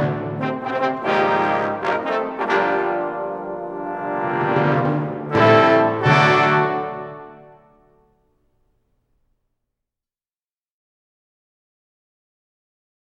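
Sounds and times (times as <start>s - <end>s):
trombone fanfare: 0.0s - 8.0s.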